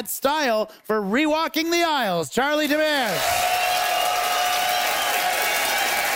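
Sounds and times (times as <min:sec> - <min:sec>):
speech: 0:00.0 - 0:03.7
crowd applauding: 0:03.1 - 0:06.1
whoops: 0:03.2 - 0:06.1.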